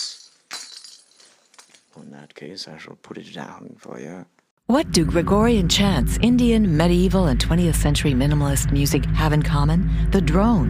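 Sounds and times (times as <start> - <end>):
cat toy with small bells inside jingling: 0.0 - 2.0
speech: 2.0 - 10.6.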